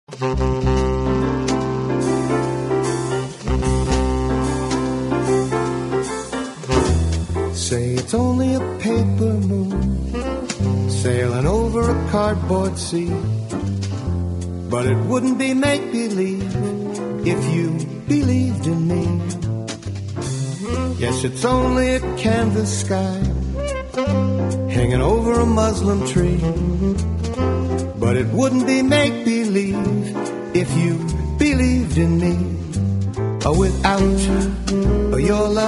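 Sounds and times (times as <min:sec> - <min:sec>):
piano: 0:00.0 - 0:35.6.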